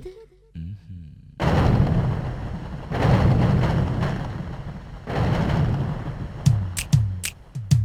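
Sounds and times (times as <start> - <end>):
thunder: 1.4 - 7.7.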